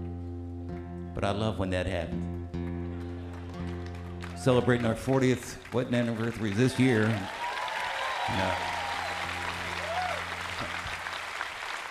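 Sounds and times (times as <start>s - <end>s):
speech: 1.2s - 2.3s, 4.4s - 7.4s, 8.3s - 8.8s
audience clapping: 2.9s - 11.8s.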